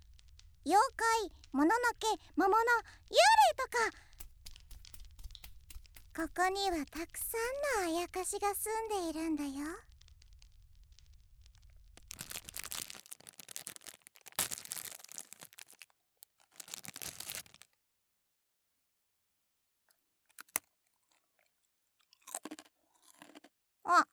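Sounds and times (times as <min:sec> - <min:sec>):
speech: 0:00.7 - 0:04.1, 0:06.2 - 0:09.9
crunchy chewing of salt rice crackers (shio senbei): 0:03.9 - 0:07.3, 0:09.9 - 0:17.7, 0:19.9 - 0:24.1.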